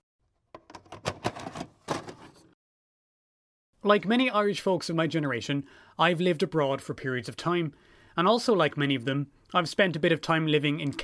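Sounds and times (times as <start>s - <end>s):
rummaging in a cabin: 0.6s - 2.5s
speech: 3.8s - 11.0s.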